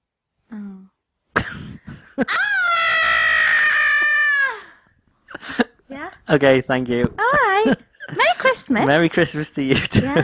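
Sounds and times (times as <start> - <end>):
speech: 2.2 - 2.5, 6.3 - 10.2
person imitating a boy screaming: 2.3 - 4.8.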